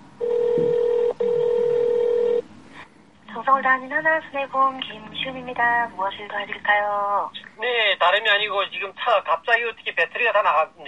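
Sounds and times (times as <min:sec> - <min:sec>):
telephone call to a car insurance company dialing and ringing: 0:00.2 - 0:02.4
speech: 0:03.6 - 0:10.8.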